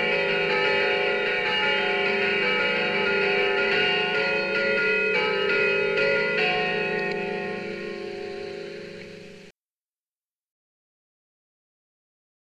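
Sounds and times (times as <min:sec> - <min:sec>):
bells of San Michele ringing: 0:00.0 - 0:09.5.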